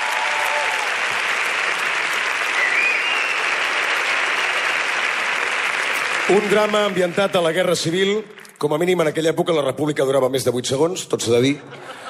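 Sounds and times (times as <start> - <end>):
audience applause: 0.0 - 8.7
speech: 6.3 - 12.0
laughter: 11.5 - 12.0.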